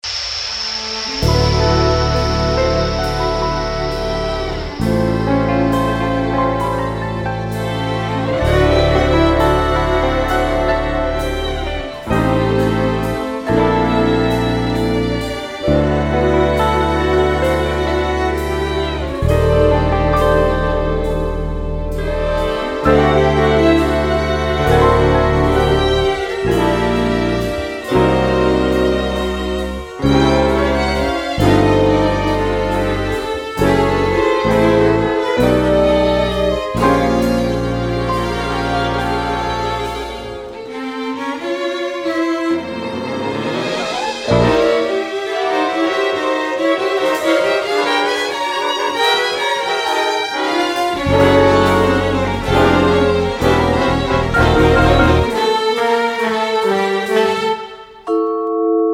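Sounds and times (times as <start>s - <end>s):
orchestra: 0.0s - 58.9s.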